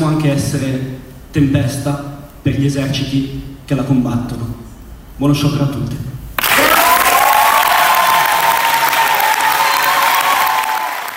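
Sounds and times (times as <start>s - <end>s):
speech: 0.1s - 6.1s
audience applause: 6.4s - 11.1s
audience cheering and whistles: 6.4s - 11.1s.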